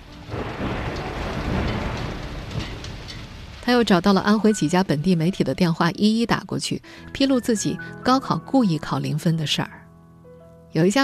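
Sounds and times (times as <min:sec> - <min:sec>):
heavy rain: 0:00.0 - 0:05.6
thunder rumbling: 0:00.0 - 0:05.8
speech: 0:03.7 - 0:09.8, 0:10.7 - 0:11.0.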